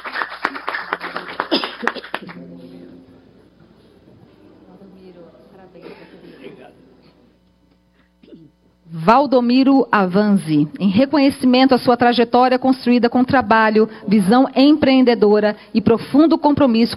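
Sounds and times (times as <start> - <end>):
audience applause: 0.0 - 2.4
speech: 9.0 - 16.9.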